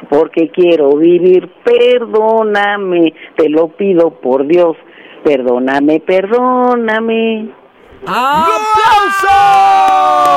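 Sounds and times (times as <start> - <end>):
speech: 0.1 - 10.3
audience applause: 8.1 - 10.3.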